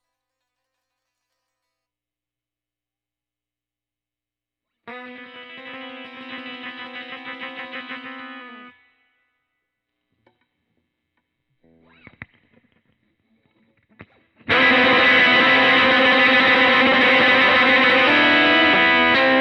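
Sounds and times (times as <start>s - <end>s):
guitar solo: 4.9s - 8.9s, 13.8s - 19.3s.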